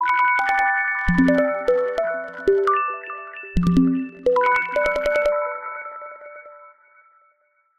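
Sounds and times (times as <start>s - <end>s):
HTC phone ringtone: 0.4s - 5.7s.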